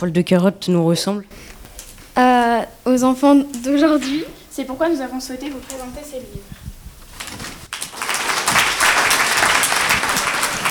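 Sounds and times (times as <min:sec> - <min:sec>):
speech: 0:00.0 - 0:01.6, 0:02.2 - 0:06.5
audience applause for Georges de la Tour pupils: 0:07.7 - 0:10.7.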